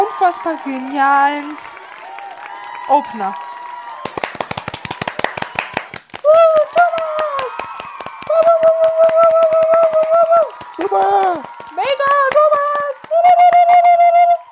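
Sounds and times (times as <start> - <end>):
speech: 0.2 - 1.7, 2.9 - 3.5
two people clapping hands: 3.6 - 14.4.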